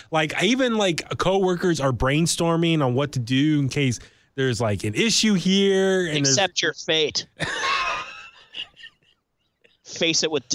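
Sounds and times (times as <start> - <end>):
speech: 0.0 - 7.8, 9.9 - 10.5
person coughing: 7.4 - 8.1
laughter: 7.4 - 9.9.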